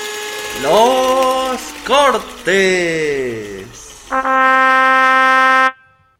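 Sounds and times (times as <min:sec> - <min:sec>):
speech: 0:00.6 - 0:01.0, 0:01.9 - 0:03.5
languid trumpet sound effect: 0:04.1 - 0:06.1.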